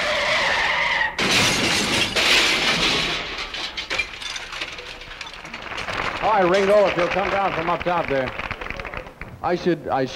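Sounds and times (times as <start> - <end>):
car crash sound effect: 0.0 - 6.7
speech: 6.4 - 8.4, 9.4 - 10.1.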